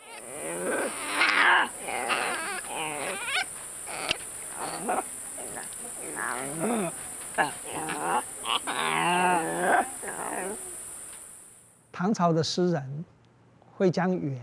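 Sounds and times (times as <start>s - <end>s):
gibbon crying calls: 0.0s - 10.9s
speech: 12.1s - 12.9s, 13.8s - 14.4s.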